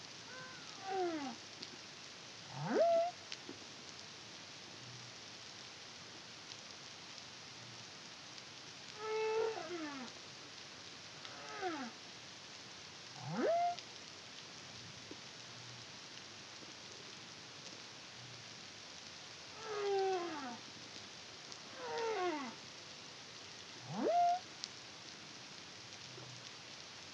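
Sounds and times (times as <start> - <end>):
soft hiss: 0.0 - 27.1
humpback whale song moans and whoops: 0.3 - 1.4, 2.6 - 3.1, 9.0 - 10.1, 13.2 - 13.8, 19.6 - 20.6, 21.7 - 22.6, 23.9 - 24.4.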